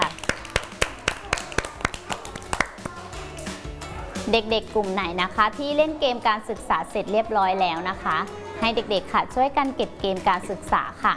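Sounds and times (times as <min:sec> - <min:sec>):
children clapping their hands: 0:00.0 - 0:03.2
speech: 0:04.3 - 0:11.1.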